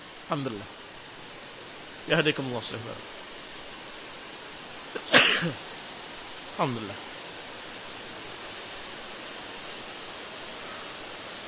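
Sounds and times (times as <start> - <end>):
speech: 0.3 - 0.8, 2.1 - 3.2, 4.9 - 5.7, 6.6 - 7.1
person sneezing: 5.0 - 5.6.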